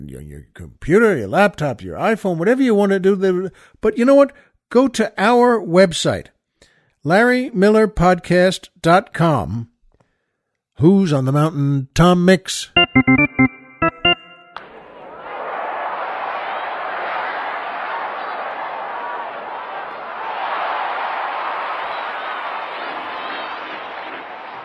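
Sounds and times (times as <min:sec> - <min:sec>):
speech: 0:00.0 - 0:06.4, 0:07.0 - 0:09.7, 0:10.8 - 0:13.1
ballpark crowd cheering after a hit: 0:12.8 - 0:24.6.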